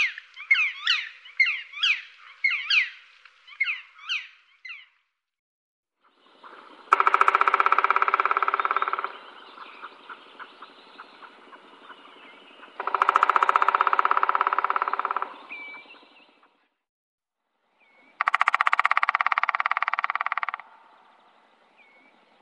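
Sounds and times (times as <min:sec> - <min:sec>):
black woodpecker whistled calls: 0:00.0 - 0:04.9, 0:06.9 - 0:16.6, 0:17.8 - 0:20.7.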